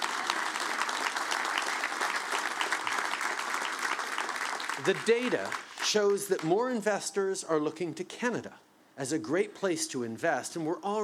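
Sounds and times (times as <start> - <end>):
audience applause: 0.0 - 6.5
speech: 4.8 - 11.0.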